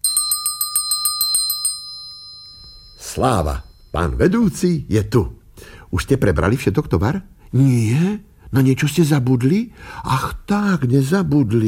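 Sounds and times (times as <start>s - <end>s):
small hand bell ringing: 0.0s - 4.2s
speech: 3.2s - 11.6s.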